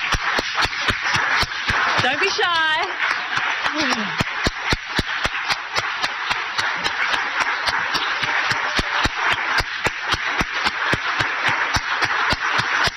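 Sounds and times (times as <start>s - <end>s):
audience applause: 0.0s - 12.9s
speech: 2.0s - 4.2s.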